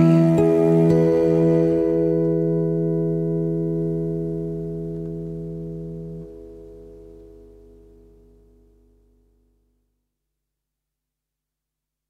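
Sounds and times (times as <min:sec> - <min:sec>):
cello: 0:00.0 - 0:04.1
acoustic guitar: 0:00.0 - 0:09.2.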